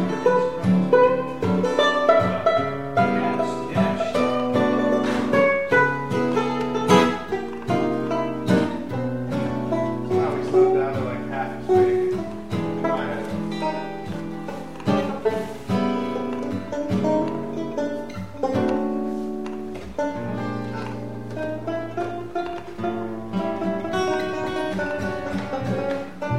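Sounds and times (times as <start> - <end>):
blues duet: 0.0 - 26.3.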